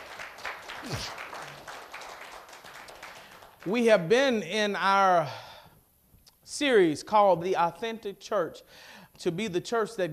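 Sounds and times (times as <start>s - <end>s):
audience clapping hands: 0.0s - 3.8s
speech: 0.8s - 1.2s, 3.6s - 5.4s, 6.5s - 10.1s.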